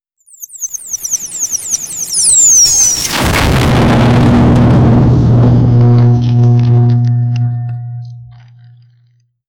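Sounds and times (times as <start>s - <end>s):
epic sound: 3.0s - 9.0s.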